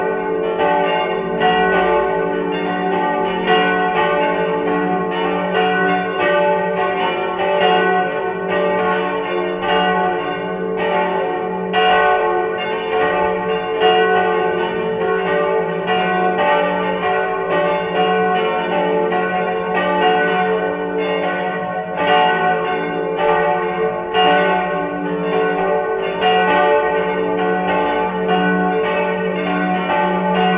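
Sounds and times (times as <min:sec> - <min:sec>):
bells ringing: 0:00.0 - 0:30.5.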